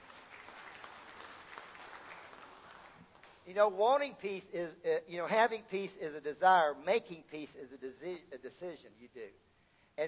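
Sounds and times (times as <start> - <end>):
audience applause: 0.0 - 3.4
speech: 3.5 - 10.0.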